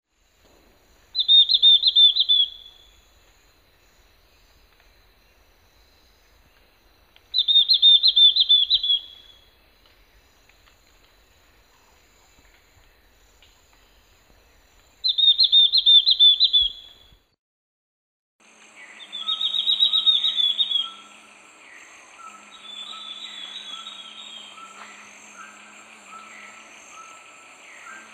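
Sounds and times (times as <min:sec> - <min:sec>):
faint insect buzz: 0:00.1 - 0:17.2, 0:18.4 - 0:28.1
Ferruginous-backed antbird whistled song: 0:01.0 - 0:03.1, 0:07.3 - 0:09.5, 0:15.0 - 0:17.1, 0:18.8 - 0:28.1.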